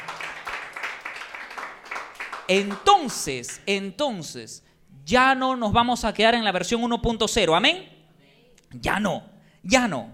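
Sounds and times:
audience clapping: 0.0s - 3.6s
speech: 2.5s - 7.9s, 8.7s - 10.1s.

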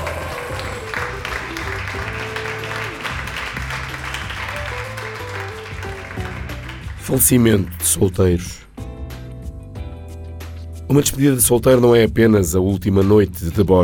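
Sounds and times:
applause: 0.0s - 8.0s
speech: 7.1s - 8.6s, 10.9s - 13.8s.

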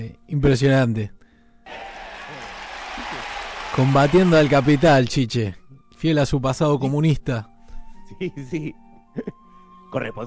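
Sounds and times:
speech: 0.0s - 1.9s, 3.8s - 7.5s, 8.1s - 10.2s
clapping in the studio: 1.7s - 5.2s.

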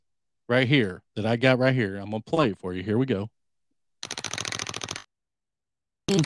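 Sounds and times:
speech: 0.5s - 3.4s
prize wheel spinning and clicking: 4.0s - 5.1s.

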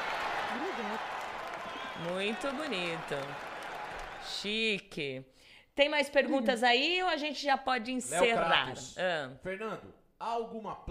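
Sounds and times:
hands clapping: 0.0s - 4.3s
speech: 2.0s - 3.5s, 4.2s - 10.8s.

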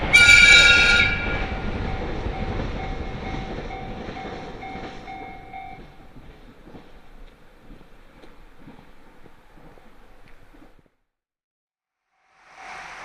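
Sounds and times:
Muroran Main Line train screech: 0.0s - 6.1s
Muroran Main Line train rumble: 0.0s - 10.9s.

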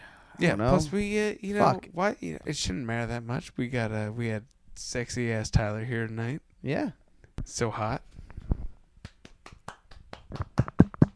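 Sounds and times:
speech: 0.4s - 8.1s
people clapping: 9.0s - 11.1s.

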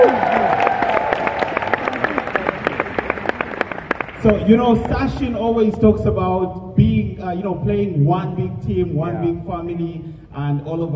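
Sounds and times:
audience applause: 0.0s - 5.3s
speech: 4.2s - 10.9s.

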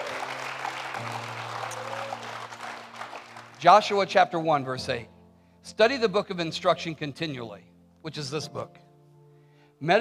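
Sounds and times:
crowd applauding: 0.0s - 4.0s
sustained organ chord: 0.0s - 5.5s
speech: 3.6s - 8.8s, 9.8s - 9.9s.

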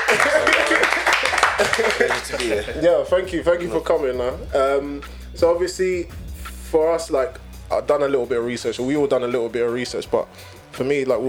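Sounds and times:
round of applause: 0.0s - 2.8s
laughter: 0.0s - 6.1s
voices talking and cheering: 0.0s - 11.2s
whooping: 0.0s - 11.2s
speech: 0.1s - 0.5s, 2.3s - 11.2s.

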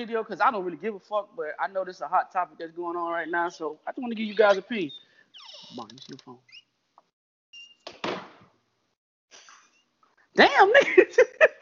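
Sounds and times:
speech: 0.0s - 6.6s, 10.4s - 11.6s
old door creaking: 4.0s - 6.8s.

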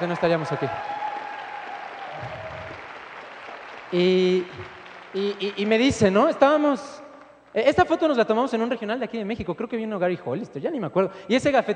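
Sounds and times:
speech: 0.0s - 1.1s, 3.9s - 11.7s
audience applause: 0.0s - 6.2s.

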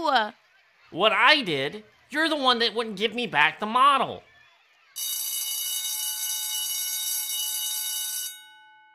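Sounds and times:
speech: 0.1s - 4.3s
electric school bell ringing: 5.0s - 8.8s.

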